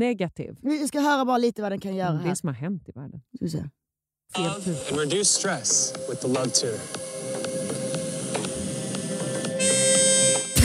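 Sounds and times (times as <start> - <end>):
speech: 0.0 - 7.6
hissy hum: 4.4 - 10.5
electronic beeping tone from device: 4.4 - 10.6.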